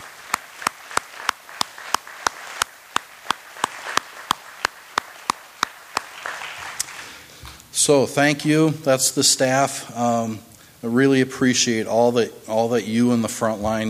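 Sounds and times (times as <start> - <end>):
applause: 0.0 - 7.3
speech: 7.8 - 13.8.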